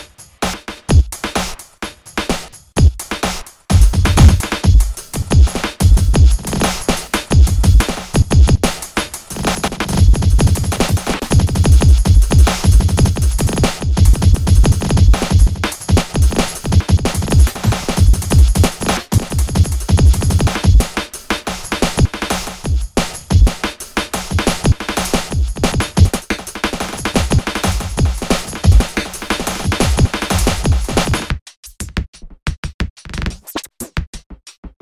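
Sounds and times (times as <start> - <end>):
drum kit: 0.0 - 34.8.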